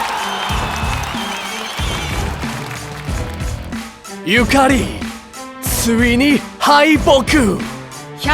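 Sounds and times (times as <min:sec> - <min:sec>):
crowd clapping: 0:00.0 - 0:05.1
speech: 0:04.2 - 0:05.0, 0:05.8 - 0:08.3.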